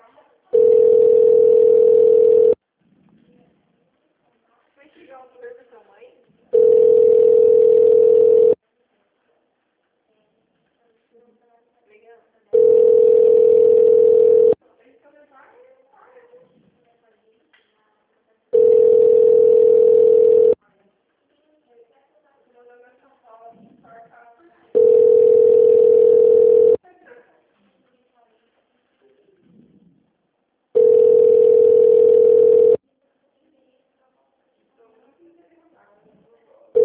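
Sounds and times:
telephone ringback tone on a call to a city hall: 0.5s - 2.6s, 6.5s - 8.6s, 12.6s - 14.6s, 18.6s - 20.6s, 24.8s - 26.8s, 30.8s - 32.8s.

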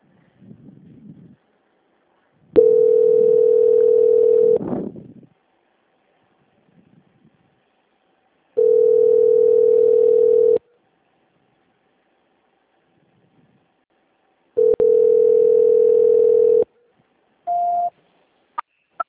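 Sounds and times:
telephone ringback tone while a call is being transferred: 2.6s - 4.6s, 8.6s - 10.6s, 14.6s - 16.7s.

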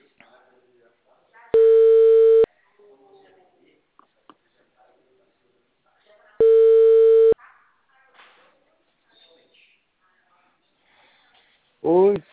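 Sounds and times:
ringback tone of outgoing phone call: 1.6s - 2.5s, 6.4s - 7.4s.

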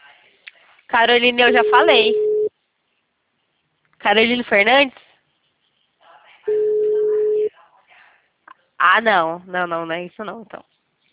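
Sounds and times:
speech: 0.9s - 2.3s, 4.0s - 5.0s, 8.8s - 10.7s
telephone busy signal: 1.5s - 2.5s, 6.5s - 7.5s.

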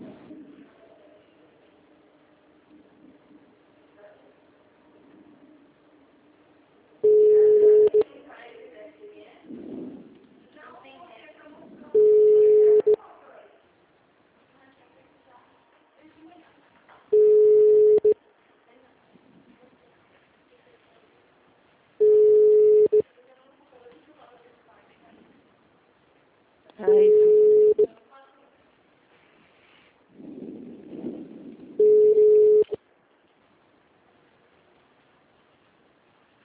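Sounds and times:
faint low murmur: 0.0s - 36.4s
telephone signal tones on an automated call line: 7.0s - 8.1s, 12.0s - 13.0s, 17.1s - 18.2s, 22.0s - 23.0s, 26.9s - 27.9s, 31.8s - 32.8s.

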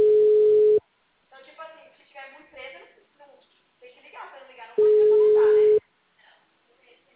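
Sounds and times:
phone ringback tone beeps: 0.0s - 0.8s, 4.8s - 5.8s.

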